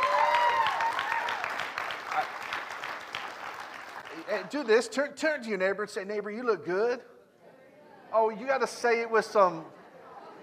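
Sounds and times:
audience clapping: 0:00.0 - 0:04.6
speech: 0:04.3 - 0:07.1, 0:08.1 - 0:09.8.

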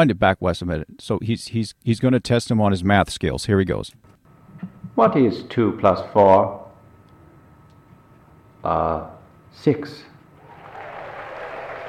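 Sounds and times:
speech: 0:00.0 - 0:06.6, 0:08.6 - 0:10.1
audience clapping hands in recording: 0:10.4 - 0:11.8.

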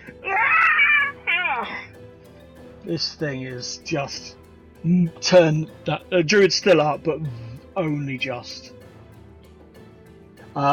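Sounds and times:
person screaming while burning: 0:00.1 - 0:01.9
speech: 0:02.9 - 0:08.8.

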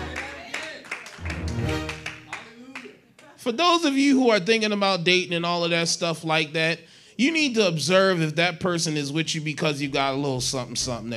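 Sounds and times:
audience clapping hands: 0:00.0 - 0:03.4
speech: 0:03.4 - 0:11.1.

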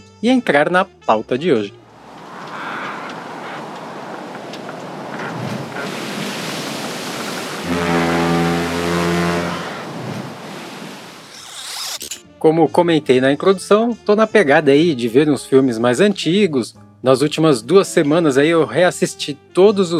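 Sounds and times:
speech: 0:00.2 - 0:01.8, 0:12.4 - 0:19.9
ship: 0:01.9 - 0:11.9.

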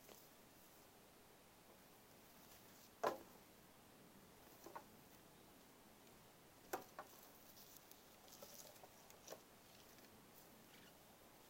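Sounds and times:
quiet hissy background: 0:00.0 - 0:11.4
dry wooden knocks and clicks: 0:03.0 - 0:03.3.

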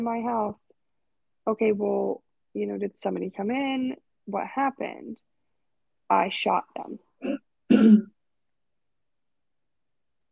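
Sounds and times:
speech: 0:00.0 - 0:00.8, 0:01.5 - 0:05.3, 0:06.1 - 0:08.2
cough: 0:07.2 - 0:08.2.

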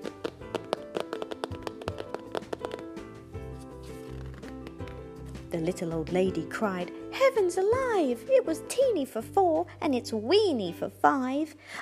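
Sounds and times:
tapping out a jig on a table: 0:00.2 - 0:02.9
speech: 0:05.5 - 0:11.8.

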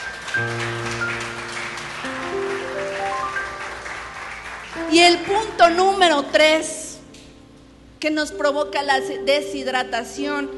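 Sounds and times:
audience clapping: 0:00.0 - 0:06.0
speech: 0:00.4 - 0:00.7, 0:04.9 - 0:06.8, 0:08.0 - 0:10.5.

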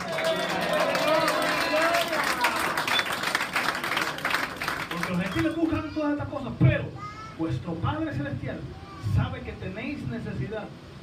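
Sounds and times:
audience clapping: 0:00.0 - 0:05.7
speech: 0:06.2 - 0:10.8.

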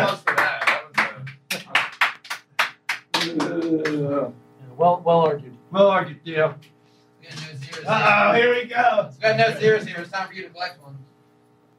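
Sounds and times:
applause: 0:00.0 - 0:04.0, 0:07.3 - 0:08.1
speech: 0:03.8 - 0:11.1.

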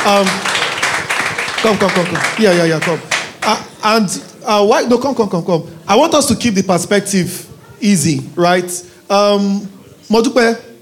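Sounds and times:
speech: 0:00.0 - 0:00.5, 0:01.6 - 0:10.7
group of people clapping: 0:00.0 - 0:03.8.

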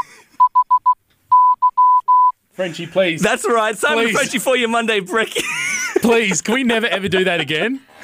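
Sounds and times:
Morse code beeps: 0:00.0 - 0:02.4
speech: 0:02.6 - 0:05.4, 0:06.0 - 0:08.0
laughter: 0:02.7 - 0:08.0.

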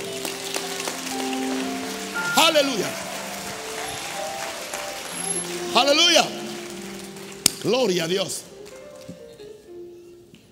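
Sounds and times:
audience applause: 0:00.0 - 0:08.8
soft held keyboard notes: 0:00.0 - 0:10.5
man calling out loudly: 0:02.3 - 0:03.0, 0:05.6 - 0:06.5
speech: 0:02.4 - 0:03.1, 0:05.8 - 0:06.4, 0:07.6 - 0:08.5.

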